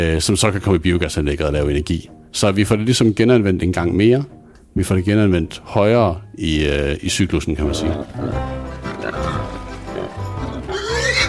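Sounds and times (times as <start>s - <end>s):
speech: 0.0s - 9.5s
pigs grunting and snuffling on a farm: 7.6s - 11.2s.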